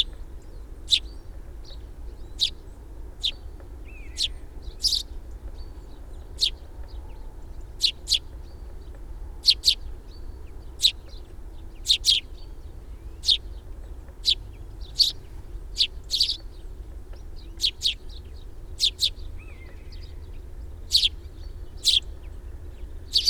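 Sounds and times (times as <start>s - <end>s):
low hum: 0.0s - 23.2s
sparrow chirping: 0.0s - 23.2s.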